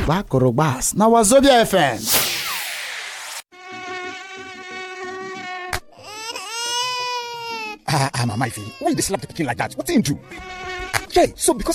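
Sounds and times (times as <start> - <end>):
speech: 0.0 - 2.2, 7.9 - 11.7
mosquito buzzing: 3.5 - 7.5, 10.2 - 11.2.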